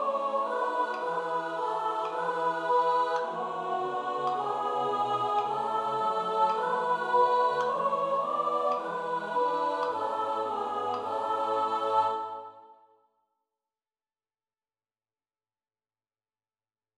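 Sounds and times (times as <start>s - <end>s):
soprano singing: 0.0s - 12.8s.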